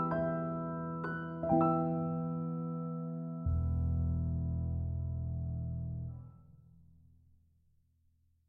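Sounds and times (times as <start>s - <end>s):
grand piano: 0.0s - 6.4s.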